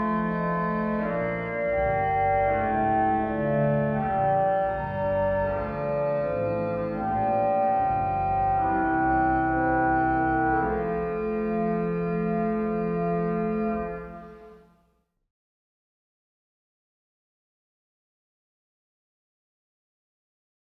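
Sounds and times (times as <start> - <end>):
chorale prelude music: 0.0 - 14.8.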